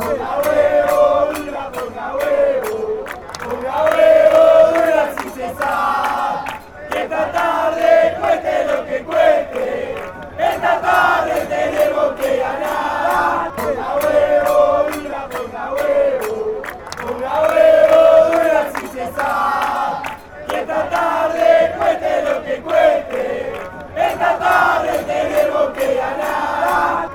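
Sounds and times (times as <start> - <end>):
crowd chanting: 0.0 - 27.1.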